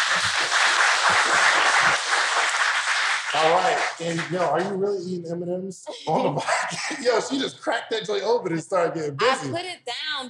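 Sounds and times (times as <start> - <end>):
audience clapping: 0.0 - 5.0
laughter: 0.0 - 5.2, 5.9 - 8.8
speech: 3.4 - 10.2.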